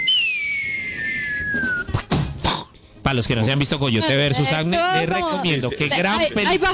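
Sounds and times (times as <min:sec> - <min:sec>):
cartoon falling-anvil descending whistle: 0:00.0 - 0:02.0
speech: 0:03.1 - 0:06.7.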